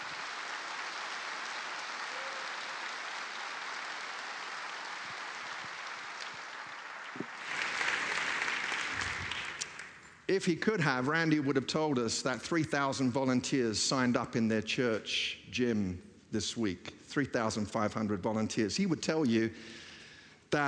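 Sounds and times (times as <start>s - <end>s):
audience round of applause: 0.0s - 10.2s
speech: 10.3s - 19.8s.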